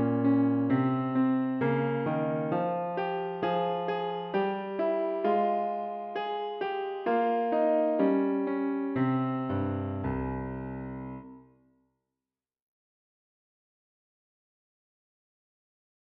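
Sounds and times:
piano: 0.0 - 11.7.

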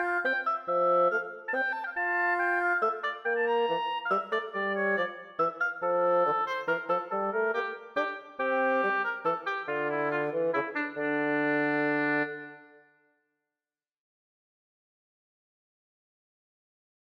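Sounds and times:
oboe and bassoon playing a minuet: 0.0 - 12.8.

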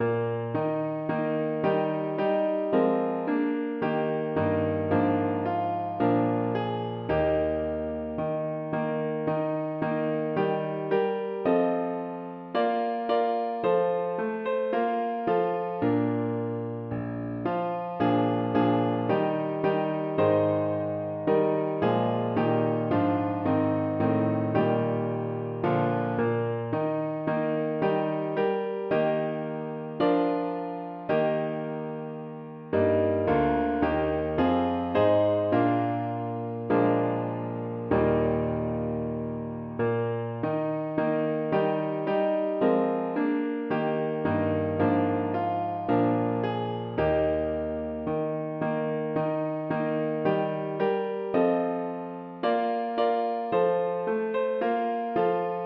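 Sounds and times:
piano: 0.0 - 55.6.

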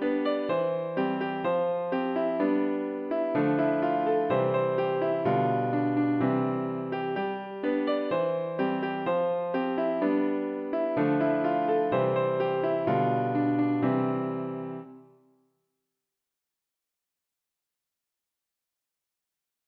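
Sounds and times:
piano: 0.0 - 15.3.

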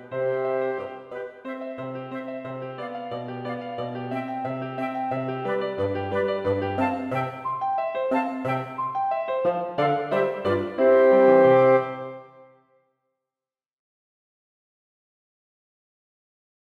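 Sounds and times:
two flutes, bassoon and piano playing a rigadoon: 0.0 - 12.5.

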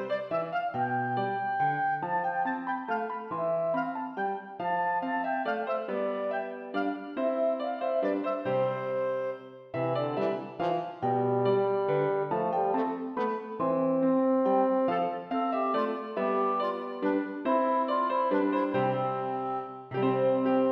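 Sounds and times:
minuet for clarinet, horn and piano: 0.0 - 20.7.

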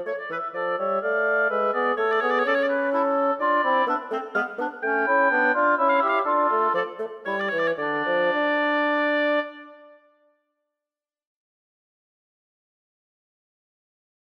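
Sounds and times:
bassoon: 0.0 - 10.1
oboe: 0.0 - 10.1
clarinet: 0.0 - 10.3.

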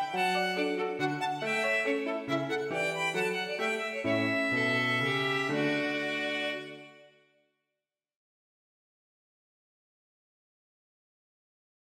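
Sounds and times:
minuet for two violins and piano: 0.0 - 7.2.

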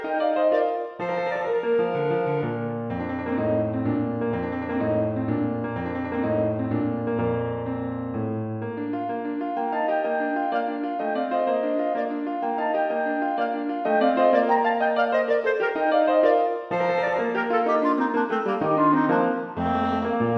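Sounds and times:
clarinet and piano sonata movement: 0.0 - 20.3.

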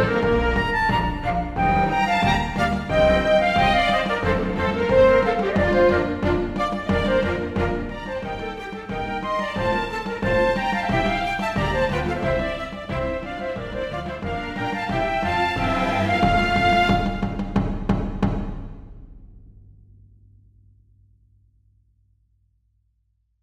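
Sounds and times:
flutes: 0.0 - 17.6
strings: 0.0 - 18.0
drums: 0.0 - 19.9.

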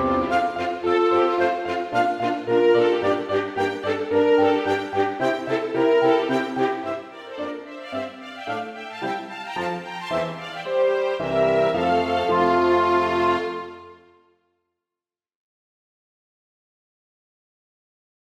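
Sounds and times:
minuet for two violins and small ensemble: 0.0 - 14.1.

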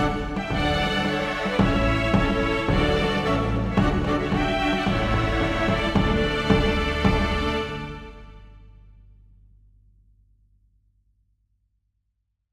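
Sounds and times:
string quintet playing a march: 0.0 - 8.6
drums: 0.0 - 8.7.

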